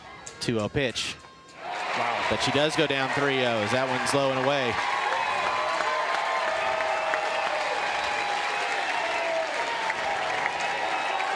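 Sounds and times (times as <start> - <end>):
speech: 0.4 - 1.2, 2.0 - 4.9
stadium crowd cheering and applauding: 1.6 - 11.3.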